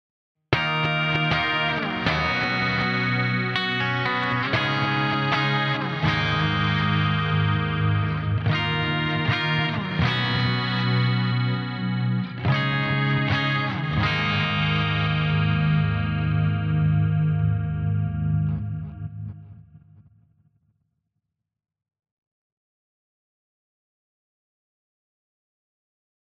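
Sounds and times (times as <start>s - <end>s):
riff through Crystallizer effect: 0.6s - 20.2s.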